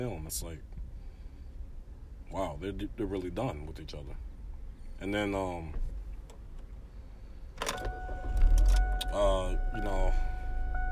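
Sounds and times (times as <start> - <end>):
speech: 0.0 - 0.7, 2.3 - 4.3, 5.0 - 5.9, 9.1 - 10.3
car engine being started: 6.0 - 10.9.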